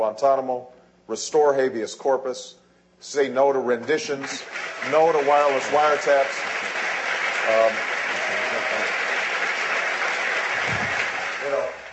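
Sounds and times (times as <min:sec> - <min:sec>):
speech: 0:00.0 - 0:06.8, 0:07.4 - 0:07.9
audience applause: 0:04.2 - 0:11.9.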